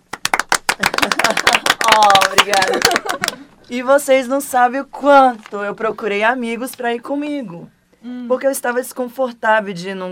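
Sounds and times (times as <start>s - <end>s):
audience applause: 0.1s - 3.4s
laughter: 0.8s - 1.8s, 2.4s - 3.5s
speech: 1.0s - 10.0s.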